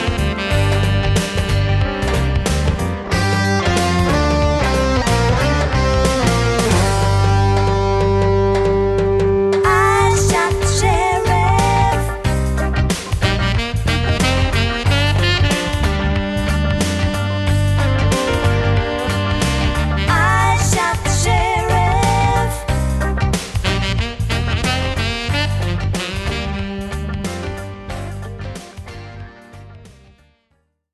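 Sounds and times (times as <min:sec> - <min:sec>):
tenor saxophone: 0:00.0 - 0:28.3.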